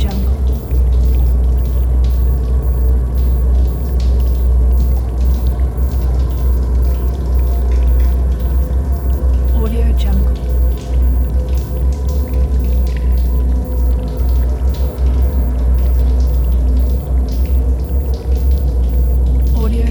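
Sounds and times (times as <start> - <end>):
spaceship ambience: 0.0 - 19.8.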